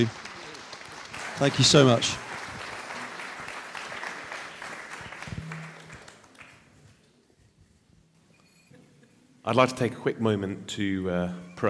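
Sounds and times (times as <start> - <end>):
speech: 0.0 - 0.2, 1.4 - 2.2, 9.5 - 11.6
audience applause: 0.0 - 6.6.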